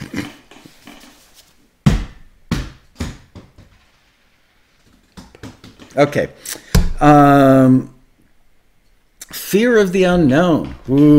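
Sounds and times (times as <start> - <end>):
Wilson volleyball bouncing: 1.8 - 3.8, 5.1 - 6.0
speech: 6.0 - 7.9, 9.5 - 11.1.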